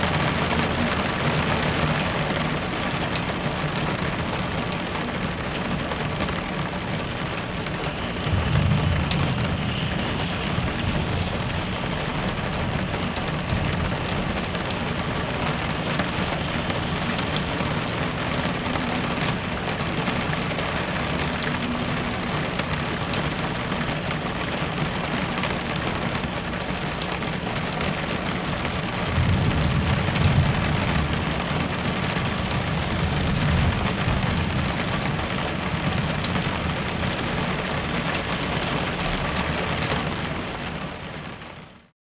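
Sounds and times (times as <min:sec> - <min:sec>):
rain outside the window: 0:00.0 - 0:41.9
thunder outside the window: 0:05.7 - 0:24.0, 0:27.7 - 0:40.1.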